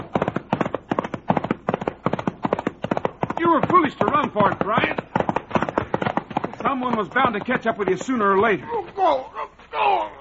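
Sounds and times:
Trigger the horse galloping: 0:00.0 - 0:10.0
speech: 0:03.5 - 0:05.1, 0:06.6 - 0:10.1.

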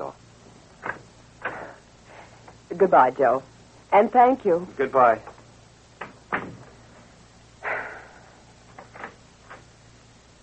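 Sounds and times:
speech: 0:02.8 - 0:05.3
door shutting: 0:06.0 - 0:06.7.

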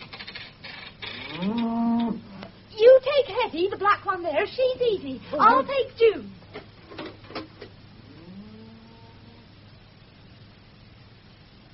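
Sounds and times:
cow mooing in a barn: 0:01.2 - 0:02.2, 0:08.1 - 0:09.5
speech: 0:03.5 - 0:06.4.

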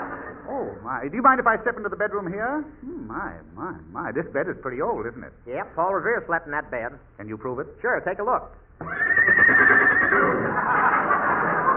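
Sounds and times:
speech: 0:00.6 - 0:09.8
horse whinnying, said to be Paul Revere's horse: 0:08.8 - 0:10.6
laughter: 0:10.1 - 0:11.7.

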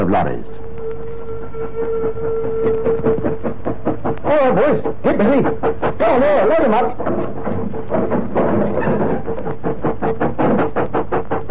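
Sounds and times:
train running out of a tunnel: 0:00.0 - 0:11.4
speech: 0:00.1 - 0:00.6, 0:01.6 - 0:02.5, 0:04.3 - 0:09.5
sustained whistle-like tone: 0:00.6 - 0:03.4.

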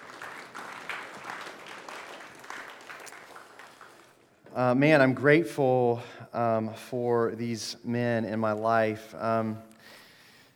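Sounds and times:
audience applause: 0:00.0 - 0:04.5
speech: 0:04.6 - 0:09.7.

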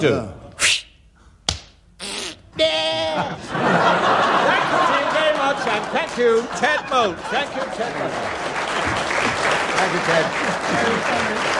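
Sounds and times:
speech: 0:00.0 - 0:00.4, 0:05.8 - 0:09.1, 0:09.8 - 0:11.5
voice imitating a sheep bleating: 0:02.0 - 0:03.3
laughter: 0:02.7 - 0:11.5.

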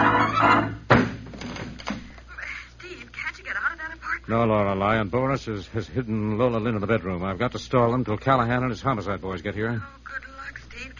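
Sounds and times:
hall door being smashed open: 0:00.0 - 0:02.0
speech: 0:04.3 - 0:10.2.

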